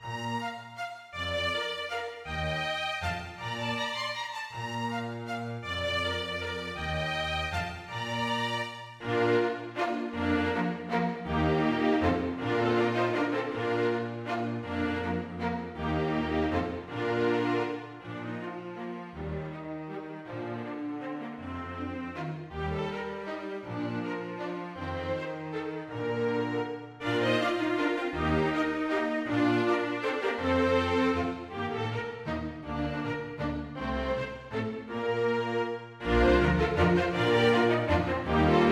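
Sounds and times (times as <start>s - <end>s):
string quintet playing a minuet: 0.0s - 38.7s.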